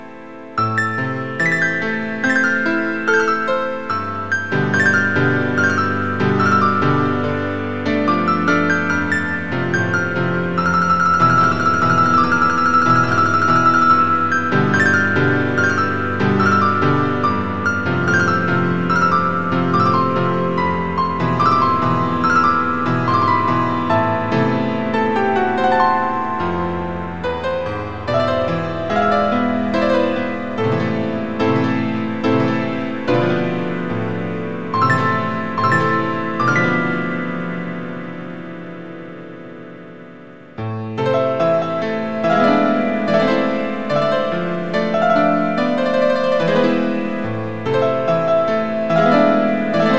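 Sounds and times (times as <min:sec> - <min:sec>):
piano: 0:00.0 - 0:49.9.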